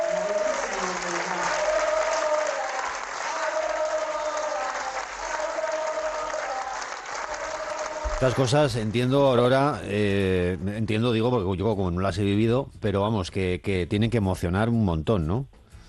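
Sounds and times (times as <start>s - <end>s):
concert audience chanting a name: 0.0s - 8.4s
concert audience applauding: 0.0s - 9.7s
speech: 8.2s - 15.6s.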